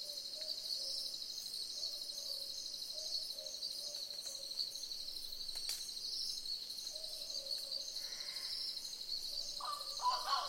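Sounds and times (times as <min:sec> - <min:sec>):
several boobook owls hooting in soft paired notes: 0:09.6 - 0:10.4.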